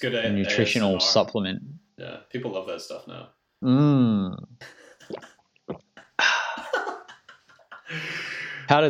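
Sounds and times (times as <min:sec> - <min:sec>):
speech: 0:00.0 - 0:06.3, 0:08.7 - 0:08.8
person sipping and swallowing a drink: 0:04.3 - 0:06.0.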